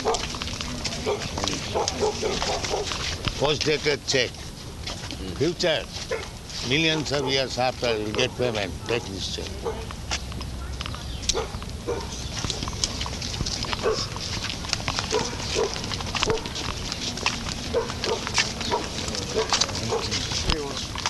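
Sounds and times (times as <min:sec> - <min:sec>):
dog barking and snarling aggressively while attacking: 0:00.0 - 0:03.5, 0:04.8 - 0:09.9, 0:11.3 - 0:21.0
voices and commotion in a chaotic scuffle: 0:00.0 - 0:21.0
speech: 0:01.0 - 0:09.9.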